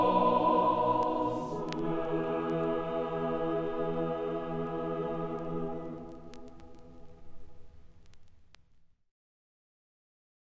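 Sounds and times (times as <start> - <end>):
penitential psalm music: 0.0 - 8.2.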